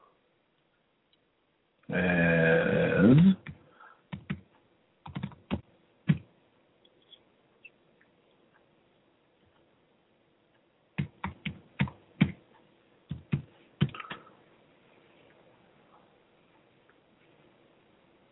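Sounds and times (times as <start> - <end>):
speech: 1.9 - 2.2
computer keyboard typing while signing in: 3.4 - 6.3, 11.0 - 12.4, 13.1 - 14.2.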